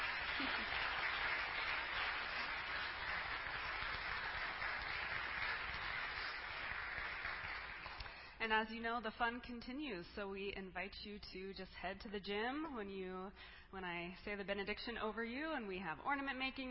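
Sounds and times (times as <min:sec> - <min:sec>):
round of applause: 0:00.0 - 0:08.4
speech: 0:08.4 - 0:16.6.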